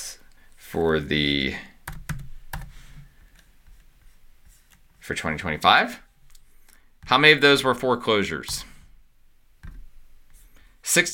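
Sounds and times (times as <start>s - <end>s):
speech: 0.7s - 1.7s, 5.1s - 6.0s, 7.1s - 8.7s, 10.9s - 11.1s
typing on a computer keyboard: 1.8s - 2.7s.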